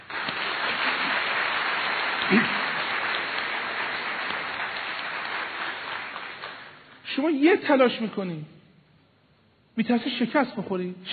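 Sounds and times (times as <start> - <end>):
audience clapping during a motivational talk: 0.0 - 7.0
speech: 2.3 - 2.6, 7.2 - 8.6, 9.8 - 11.1.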